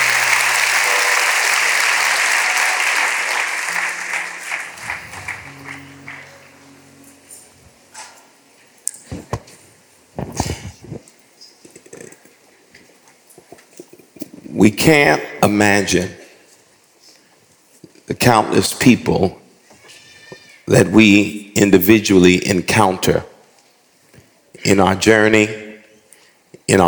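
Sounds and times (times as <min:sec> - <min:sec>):
audience hand clapping: 0:00.0 - 0:07.4
speech: 0:14.9 - 0:16.2, 0:18.2 - 0:19.4, 0:20.7 - 0:23.3, 0:24.6 - 0:25.6, 0:26.7 - 0:26.8.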